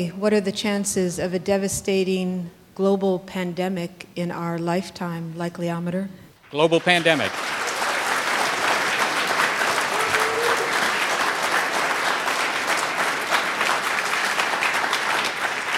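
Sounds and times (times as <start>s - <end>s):
speech: 0.0s - 7.6s
audience applause: 6.5s - 15.7s.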